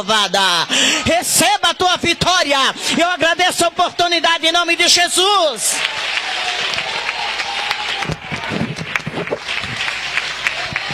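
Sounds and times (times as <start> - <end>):
speech: 0.0 - 7.4
applause: 5.6 - 10.9.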